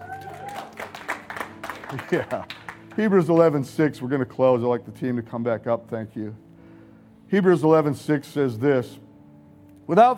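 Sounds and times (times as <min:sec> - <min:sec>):
audience hand clapping: 0:00.0 - 0:03.6
speech: 0:01.9 - 0:06.4, 0:07.3 - 0:09.0, 0:09.9 - 0:10.1.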